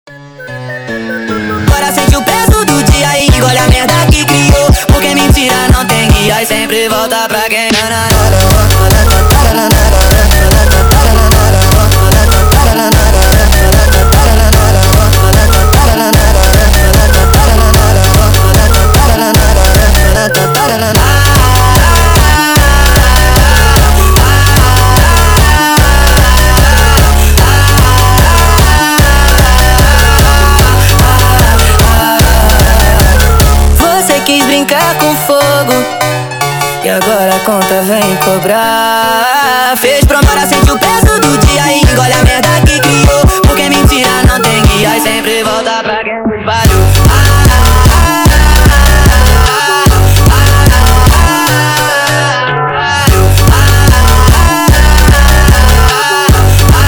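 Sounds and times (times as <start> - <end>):
sped up montagem music: 0.1 - 56.8.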